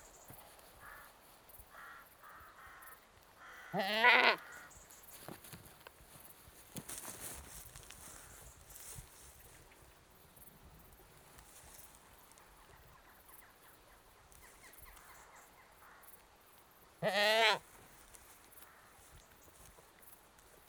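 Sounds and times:
annoyed British goat bleating: 0:03.7 - 0:04.5, 0:17.0 - 0:17.6.

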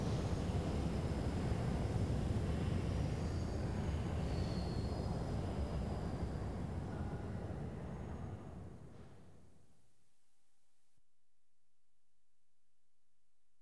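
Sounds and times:
London Underground trains: 0:00.0 - 0:09.8.

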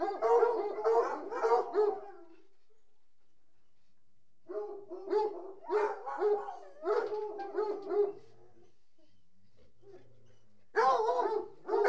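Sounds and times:
dog barking: 0:00.0 - 0:02.4, 0:04.5 - 0:08.3, 0:10.7 - 0:11.8.

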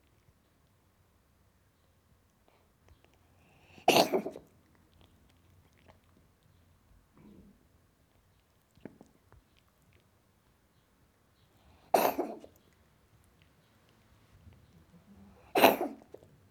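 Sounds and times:
cat coughing: 0:03.8 - 0:04.4, 0:11.9 - 0:12.5, 0:15.4 - 0:16.2.

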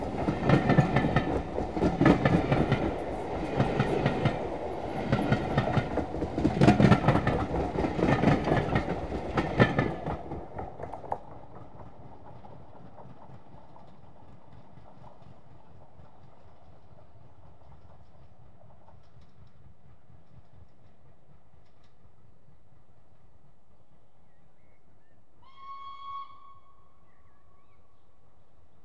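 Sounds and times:
high speed train passing: 0:00.0 - 0:24.2.

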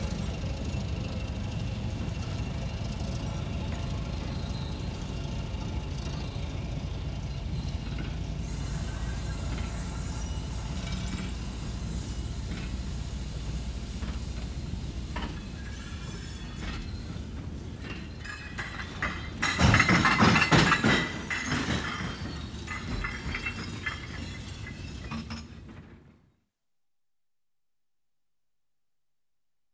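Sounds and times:
diesel trains shunting trucks: 0:00.0 - 0:25.9.

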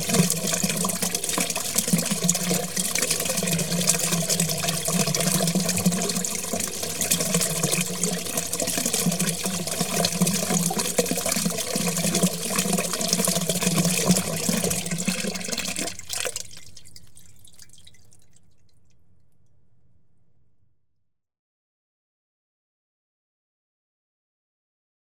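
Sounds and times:
water flowing down a drain: 0:00.0 - 0:19.1.

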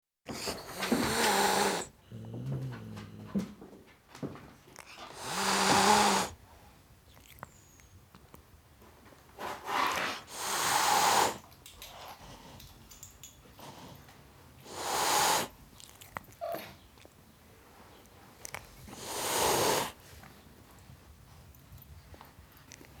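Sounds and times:
tom cat hissing at a dog: 0:00.3 - 0:01.9, 0:05.0 - 0:06.4, 0:09.4 - 0:11.5, 0:14.6 - 0:15.5, 0:18.9 - 0:20.0.

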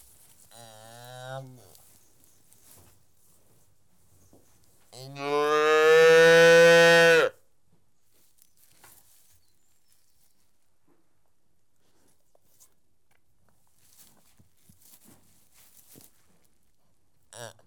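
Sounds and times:
cattle calf mooing: 0:05.0 - 0:07.3.

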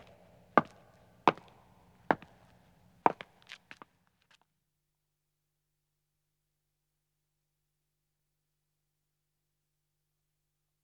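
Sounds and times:
man's footsteps on stone: 0:00.0 - 0:03.9.

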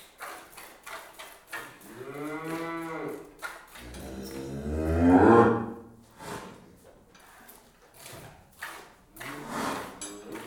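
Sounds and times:
cow mooing: 0:01.9 - 0:03.2, 0:03.8 - 0:05.9.

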